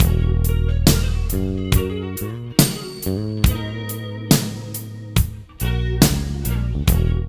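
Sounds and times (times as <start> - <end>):
funky loops: 0.0 - 7.2.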